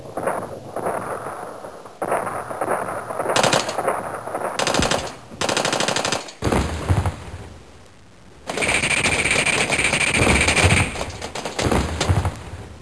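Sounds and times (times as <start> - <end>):
war sounds: 0.0 - 7.6, 8.4 - 12.8.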